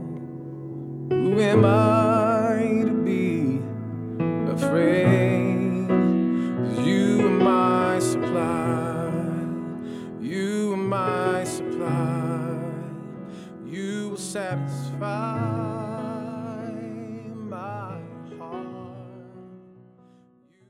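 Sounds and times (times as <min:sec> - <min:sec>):
piano playing a spiritual: 0:00.0 - 0:20.6.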